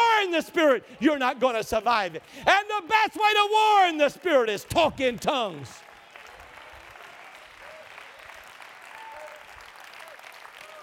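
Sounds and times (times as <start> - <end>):
speech: 0.3 - 5.9
audience clapping hands: 3.8 - 10.8.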